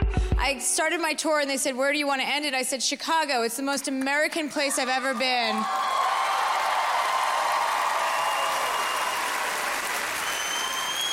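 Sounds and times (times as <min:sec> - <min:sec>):
speech: 0:00.4 - 0:05.9
crowd applause: 0:04.9 - 0:11.1.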